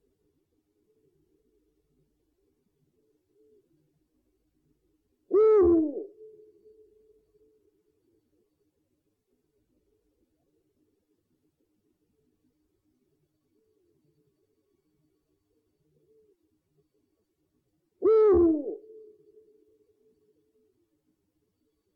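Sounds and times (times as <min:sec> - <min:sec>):
owl giving a two-part hoot: 0:05.3 - 0:06.8, 0:18.0 - 0:19.6.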